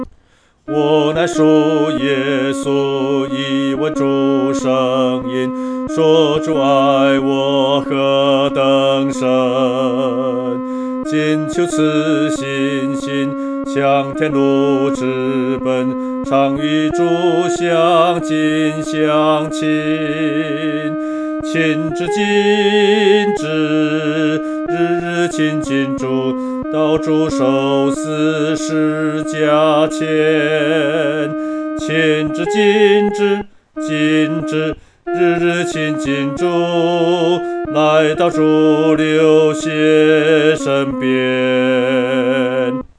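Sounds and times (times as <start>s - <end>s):
solo singing, second voice: 0.7s - 42.9s.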